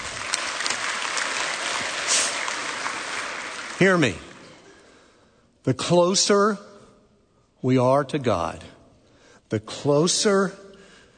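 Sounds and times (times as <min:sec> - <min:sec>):
audience clapping: 0:00.0 - 0:04.9
speech: 0:03.8 - 0:04.3, 0:05.6 - 0:06.7, 0:07.6 - 0:08.8, 0:09.5 - 0:10.6.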